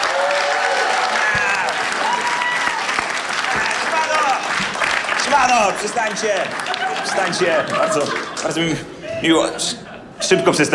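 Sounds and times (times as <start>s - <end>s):
whoops and shouts: 0.0s - 4.4s
large audience applause: 0.0s - 8.7s
laughter: 5.3s - 10.7s
speech: 5.5s - 10.7s.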